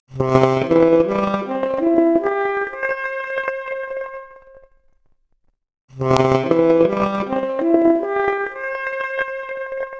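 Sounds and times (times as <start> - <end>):
noisy 4-bit saxophone arpeggio: 0.2 - 4.0, 6.0 - 9.9.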